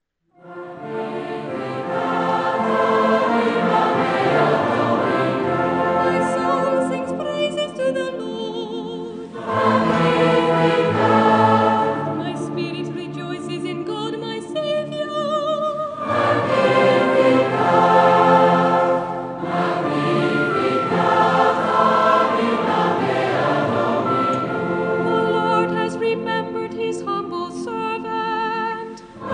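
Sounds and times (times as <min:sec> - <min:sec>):
choral music: 0:00.4 - 0:28.0, 0:28.7 - 0:29.3.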